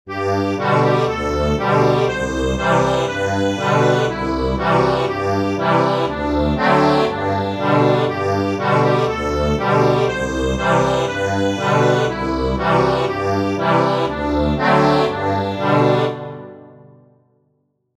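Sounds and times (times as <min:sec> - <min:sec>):
accordion: 0:00.1 - 0:16.9.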